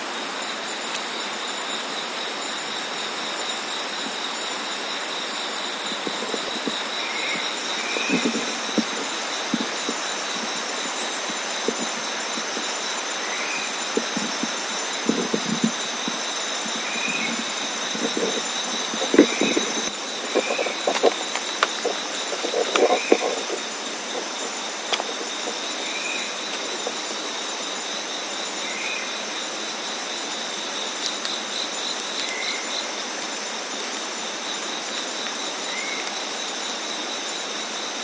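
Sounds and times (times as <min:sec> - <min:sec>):
Okinawa green tree frog calling: 0:00.1 - 0:33.1, 0:33.7 - 0:38.0.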